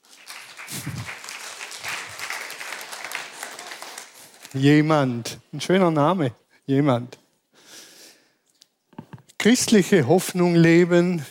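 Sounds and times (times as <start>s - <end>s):
applause: 0.0s - 4.7s
speech: 4.5s - 7.2s, 9.4s - 11.2s.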